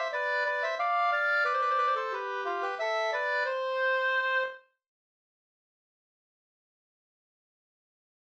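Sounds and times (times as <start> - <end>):
waltz in C major: 0.0 - 4.6.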